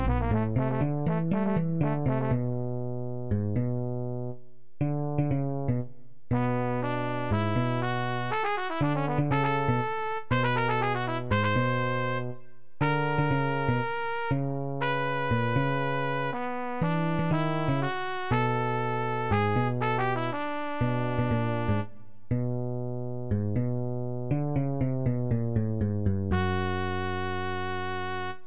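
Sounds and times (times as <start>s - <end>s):
trumpet: 0.0s - 3.2s, 6.3s - 22.2s, 26.3s - 28.4s
bass: 0.0s - 28.4s.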